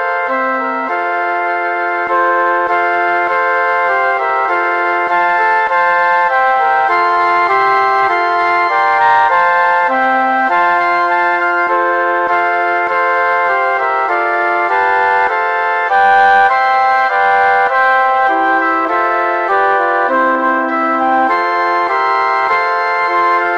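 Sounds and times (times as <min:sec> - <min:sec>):
transverse flute quartet: 0:00.0 - 0:23.5.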